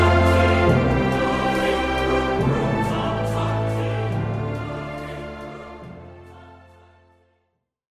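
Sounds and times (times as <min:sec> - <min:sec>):
victory jingle: 0:00.0 - 0:06.3.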